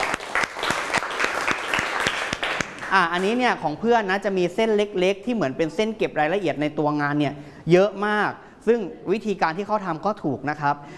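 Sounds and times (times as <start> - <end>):
audience applause: 0.0 - 2.9
speech: 2.9 - 10.9.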